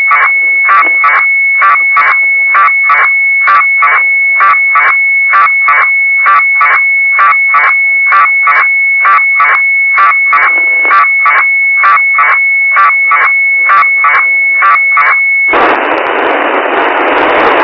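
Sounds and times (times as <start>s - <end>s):
UNITEC-1 FSK transmission test on ground: 0.0s - 17.6s.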